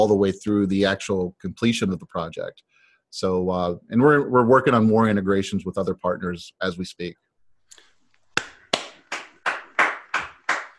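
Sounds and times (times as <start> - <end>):
speech: 0.0 - 7.2
audience applause: 8.7 - 10.7.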